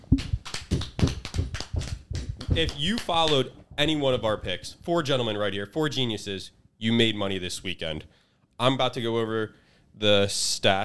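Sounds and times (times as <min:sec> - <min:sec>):
hosts clapping hands: 0:00.0 - 0:03.5
speech: 0:02.6 - 0:10.8.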